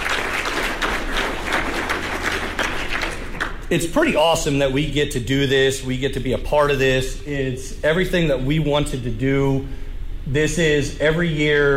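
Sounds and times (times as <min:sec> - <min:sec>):
audience applause: 0:00.0 - 0:03.7
speech: 0:03.7 - 0:11.7.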